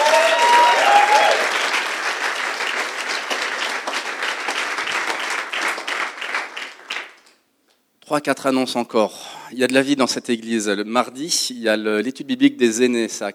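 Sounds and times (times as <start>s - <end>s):
audience applause: 0.0s - 7.3s
speech: 8.1s - 13.3s.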